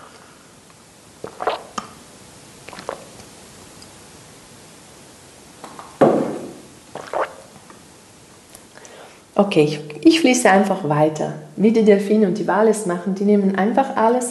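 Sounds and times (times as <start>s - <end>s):
hiss: 0.0s - 14.2s
person sipping water: 1.2s - 2.0s, 2.6s - 3.4s, 6.9s - 7.8s
speech: 9.4s - 14.2s.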